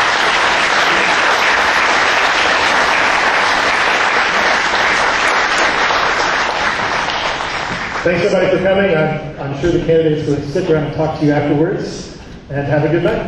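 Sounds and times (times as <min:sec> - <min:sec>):
audience applause for candidates: 0:00.0 - 0:08.5
speech: 0:08.0 - 0:13.2.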